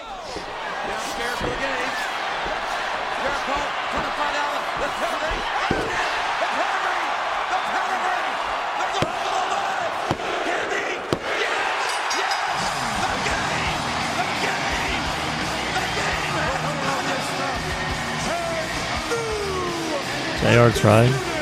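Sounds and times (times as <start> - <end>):
subdued wrestling arena crowd noise: 0.0 - 21.3
thuds from the wrestling ring: 0.2 - 10.4, 11.0 - 11.5
speech: 3.2 - 6.1, 20.4 - 21.3.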